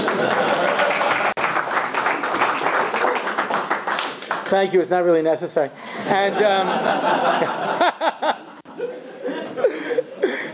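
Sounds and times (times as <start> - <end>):
laughter: 0.0 - 1.4, 6.0 - 10.5
audience applause at the end of a talk: 0.0 - 4.7
speech: 4.5 - 10.5.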